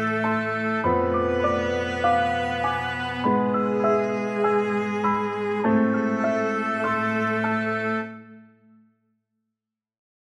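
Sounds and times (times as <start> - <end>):
violin in a dramatic atmosphere: 0.0 - 8.6
piano in a dramatic atmosphere: 0.0 - 8.9.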